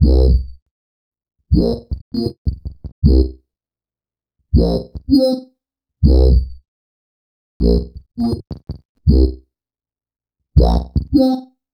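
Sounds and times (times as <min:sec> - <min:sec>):
acid bass: 0:00.0 - 0:00.5, 0:01.6 - 0:03.3, 0:04.6 - 0:05.0, 0:06.0 - 0:06.6, 0:07.6 - 0:09.4, 0:10.6 - 0:11.2.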